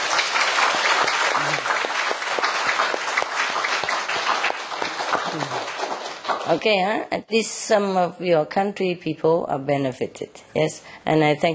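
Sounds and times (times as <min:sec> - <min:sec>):
audience applause: 0:00.0 - 0:06.6
speech: 0:06.5 - 0:11.5.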